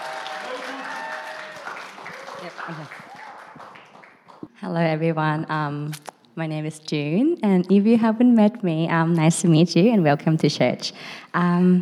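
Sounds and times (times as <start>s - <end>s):
audience applause: 0.0s - 4.4s
speech: 2.4s - 3.1s, 4.6s - 11.8s.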